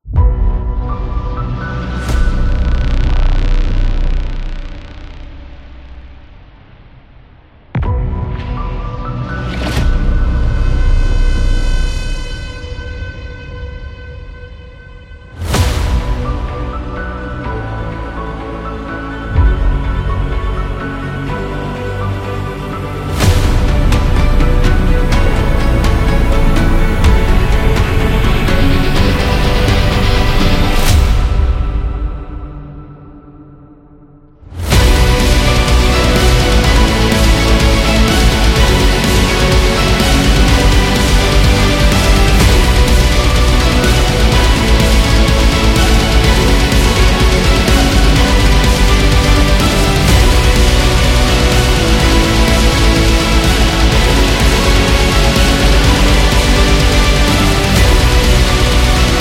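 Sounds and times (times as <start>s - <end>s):
epic metal trailer music: 0.0s - 33.6s, 34.3s - 59.1s.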